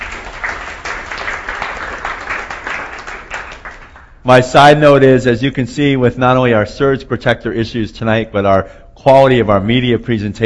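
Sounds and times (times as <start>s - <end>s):
audience applause: 0.0s - 4.2s
speech: 4.2s - 10.4s.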